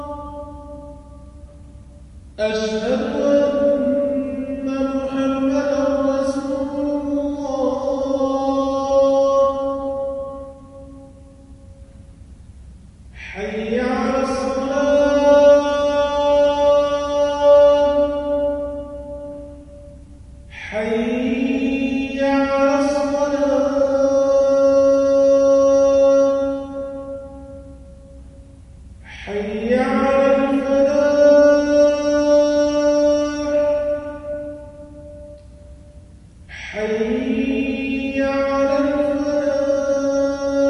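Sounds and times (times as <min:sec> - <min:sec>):
adhan call to prayer: 0:00.0 - 0:12.0, 0:13.2 - 0:40.6.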